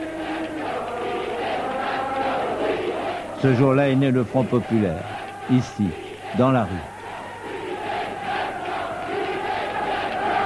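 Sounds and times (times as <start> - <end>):
large crowd in the street shouting a rallying cry in unison: 0.0 - 10.4
speech: 3.4 - 7.0.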